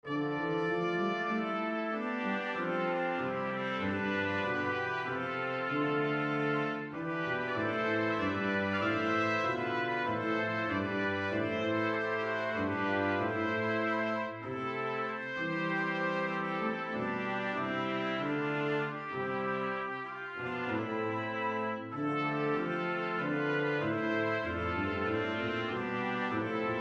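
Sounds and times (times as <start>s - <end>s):
brass quintet: 0.0s - 26.7s.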